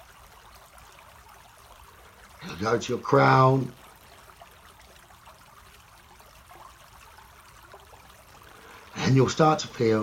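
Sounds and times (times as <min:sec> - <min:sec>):
stream water flowing with faint bubbling and trickling: 0:00.0 - 0:10.0
speech: 0:02.4 - 0:03.8, 0:09.1 - 0:10.0.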